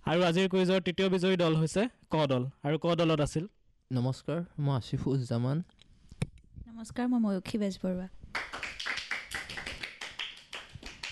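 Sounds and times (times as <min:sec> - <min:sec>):
speech: 0:00.1 - 0:05.8, 0:06.7 - 0:08.5
quiz audience applauding the competing teams: 0:08.3 - 0:11.1.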